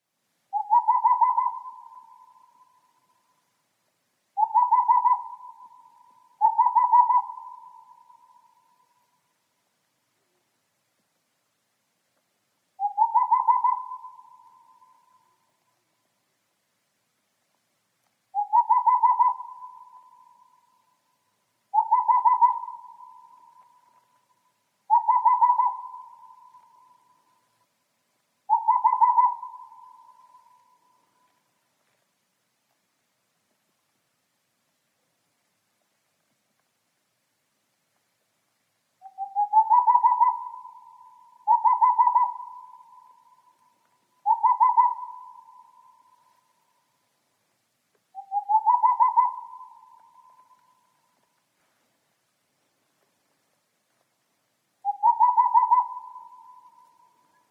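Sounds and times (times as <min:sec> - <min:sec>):
boreal owl calling: 0:00.5 - 0:03.5, 0:04.3 - 0:09.3, 0:12.8 - 0:16.1, 0:18.3 - 0:27.7, 0:28.4 - 0:32.0, 0:39.0 - 0:47.2, 0:48.1 - 0:51.5, 0:54.8 - 0:57.4.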